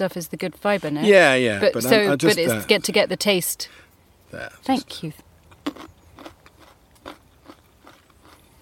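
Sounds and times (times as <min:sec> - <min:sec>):
speech: 0:00.0 - 0:05.9
fresh nut being bitten and chewed: 0:05.5 - 0:08.5.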